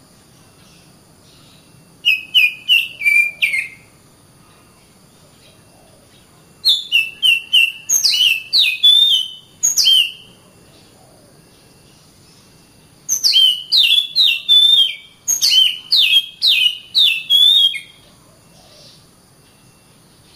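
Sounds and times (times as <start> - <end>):
Oriental magpie-robin singing clear whistled notes: 0.4 - 3.9, 5.4 - 18.0.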